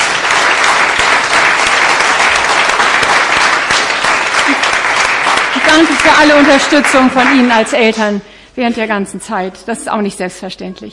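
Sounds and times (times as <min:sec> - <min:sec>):
applause: 0:00.0 - 0:08.2
speech: 0:05.8 - 0:10.9.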